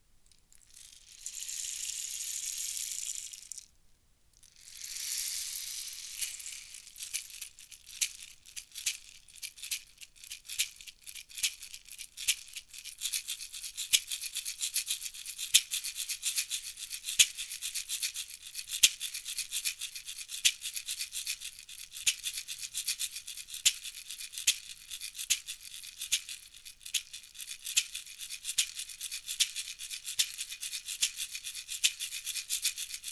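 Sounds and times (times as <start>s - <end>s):
Ghana shaker: 0.0s - 33.1s.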